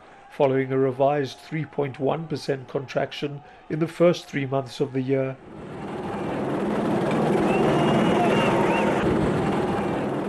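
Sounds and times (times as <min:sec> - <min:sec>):
speech: 0:00.4 - 0:05.7
city street bustle: 0:04.9 - 0:10.2
police helicopters hovering over a city: 0:05.4 - 0:10.2.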